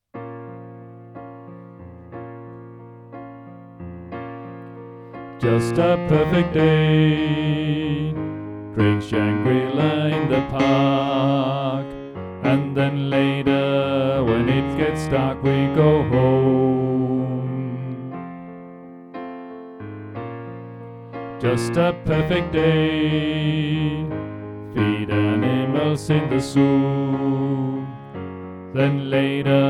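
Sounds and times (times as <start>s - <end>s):
tenor singing: 5.4s - 18.5s, 21.3s - 29.6s.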